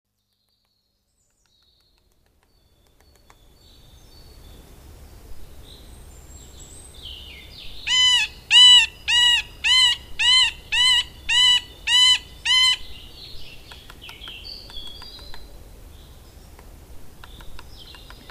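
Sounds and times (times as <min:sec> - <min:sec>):
middle spotted woodpecker nasal mewing quacks: 0:07.9 - 0:15.5.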